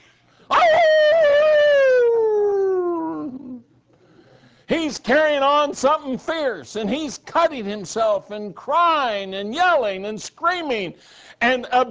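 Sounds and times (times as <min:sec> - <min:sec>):
person imitating a wolf howl: 0:00.5 - 0:03.6
speech: 0:04.9 - 0:11.8.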